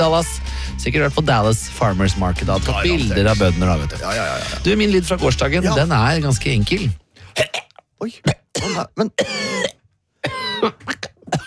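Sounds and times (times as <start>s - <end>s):
speech: 0.0s - 11.4s
person coughing after getting a fly in the throat while cycling: 7.4s - 11.4s.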